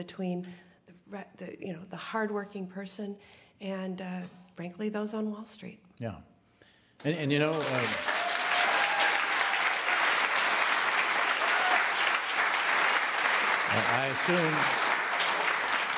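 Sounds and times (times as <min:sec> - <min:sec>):
speech: 0:00.0 - 0:06.3, 0:07.0 - 0:08.1, 0:14.0 - 0:14.9
audience applause: 0:07.3 - 0:15.9.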